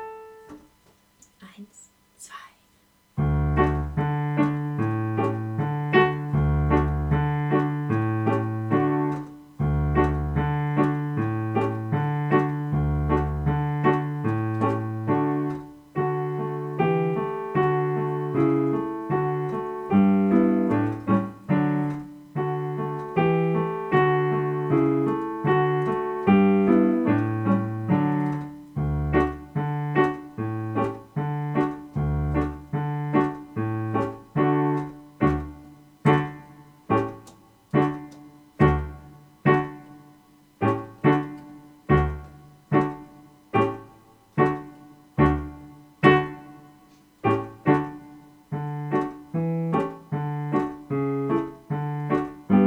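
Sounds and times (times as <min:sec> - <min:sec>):
carol accompaniment: 0:03.2 - 0:52.6.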